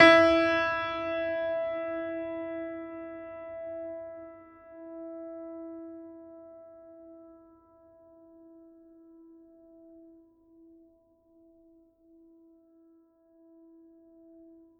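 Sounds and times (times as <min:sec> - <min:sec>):
classical piano E3 note: 0:00.0 - 0:06.0.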